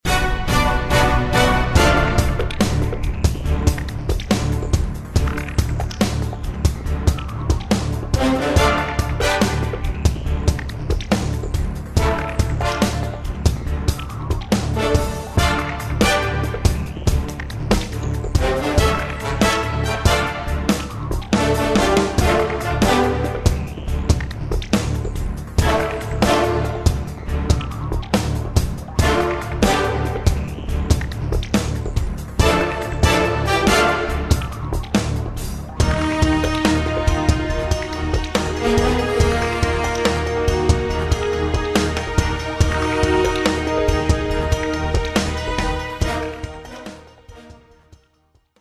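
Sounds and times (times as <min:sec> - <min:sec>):
battle background music: 0:00.0 - 0:48.1.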